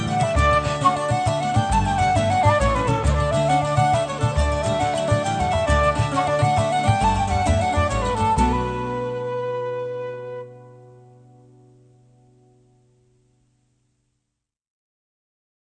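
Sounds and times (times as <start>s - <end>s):
slip jig tune: 0.0s - 9.6s.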